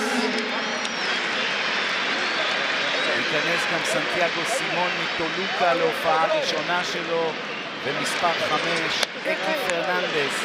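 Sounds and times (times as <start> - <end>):
commentator talking: 0.0 - 0.5, 3.1 - 10.4
stadium crowd at a football international applauding a substituted midfielder: 0.0 - 10.4
speech: 3.3 - 10.4.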